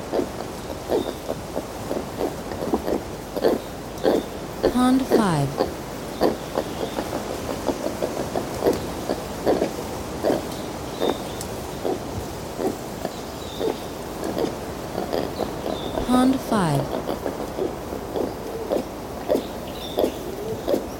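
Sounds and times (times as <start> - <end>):
brown lemur grunts: 0.1 - 20.9
speech: 4.8 - 5.8.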